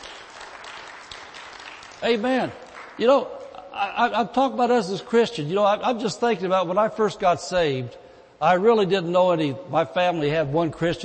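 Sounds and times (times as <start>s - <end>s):
audience clapping: 0.0s - 3.2s
speech: 2.0s - 11.0s.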